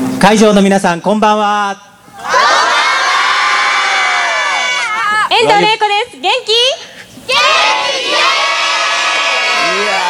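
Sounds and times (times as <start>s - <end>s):
speech: 0.2s - 2.5s, 5.4s - 8.3s
audience shouting back a loud greeting: 2.2s - 5.6s, 7.3s - 10.0s.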